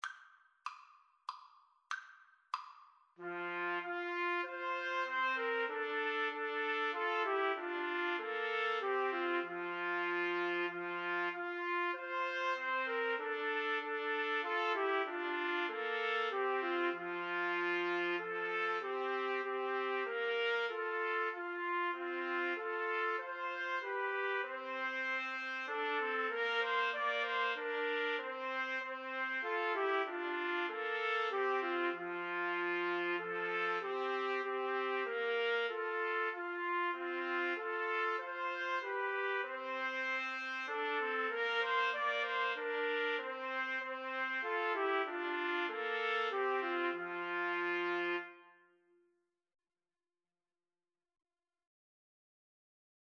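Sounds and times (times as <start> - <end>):
trumpet trio playing: 3.2 - 48.6.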